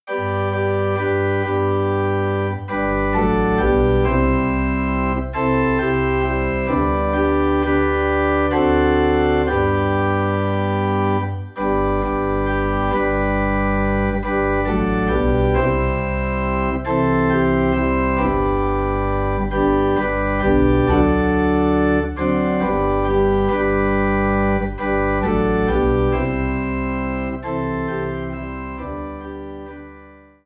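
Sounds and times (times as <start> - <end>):
organ in G: 0.0 - 30.4.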